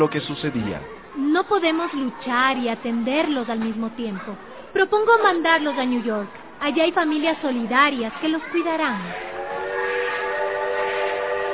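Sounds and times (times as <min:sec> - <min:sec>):
speech: 0:00.0 - 0:09.3
departing train whistle: 0:09.1 - 0:11.5.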